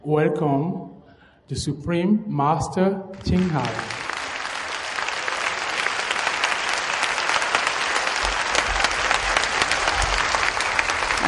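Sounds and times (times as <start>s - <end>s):
speech: 0.1s - 0.9s, 1.5s - 4.0s
audience applause: 3.2s - 11.2s.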